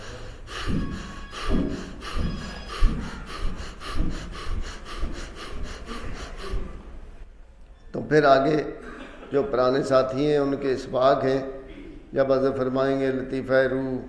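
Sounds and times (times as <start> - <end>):
slow rhythmic breathing in a breathing exercise drawing the word Allah: 0.0 - 7.4
speech: 0.7 - 1.9, 8.1 - 14.0.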